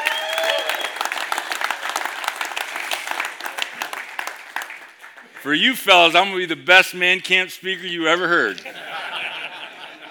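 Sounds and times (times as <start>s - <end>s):
whistles and whoops: 0.0s - 1.2s
audience applause: 0.0s - 5.4s
speech: 5.4s - 8.8s
laughter: 8.6s - 10.0s.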